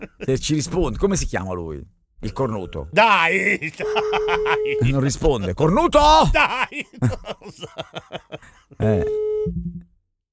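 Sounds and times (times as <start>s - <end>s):
laughter: 0.0s - 0.3s, 3.0s - 9.1s
speech: 0.1s - 9.7s
telephone busy tone on a radio call-in line after the caller hangs up: 3.8s - 5.0s, 9.0s - 9.6s.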